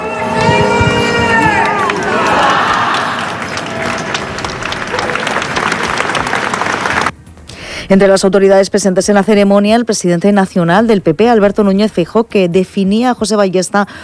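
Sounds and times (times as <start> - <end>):
large crowd applauding a passing funeral procession: 0.0 - 7.1
speech: 7.9 - 14.0.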